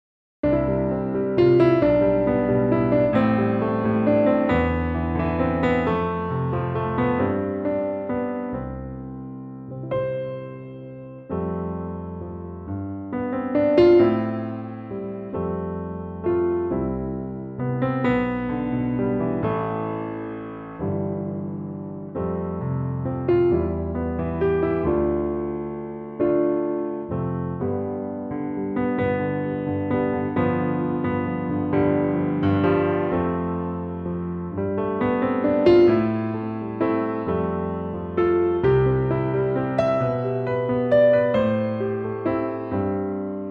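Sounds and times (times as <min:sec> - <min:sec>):
piano track in C: 0:00.4 - 0:43.4.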